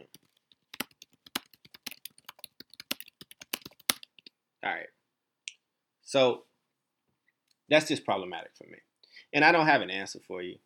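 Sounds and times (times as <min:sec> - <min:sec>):
typing on a computer keyboard: 0:00.0 - 0:04.3
speech: 0:04.6 - 0:05.0, 0:06.1 - 0:06.5, 0:07.7 - 0:10.6.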